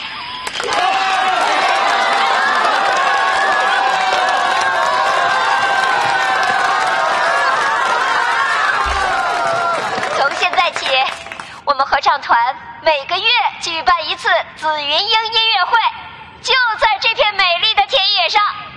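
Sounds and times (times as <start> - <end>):
crowd applause and cheering: 0.4 - 11.5
speech: 12.9 - 18.6.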